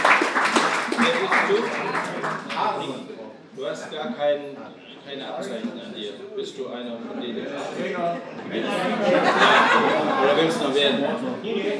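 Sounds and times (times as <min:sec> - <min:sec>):
audience applause: 0:00.0 - 0:02.7
speech: 0:01.0 - 0:11.7
laughter: 0:07.8 - 0:11.0.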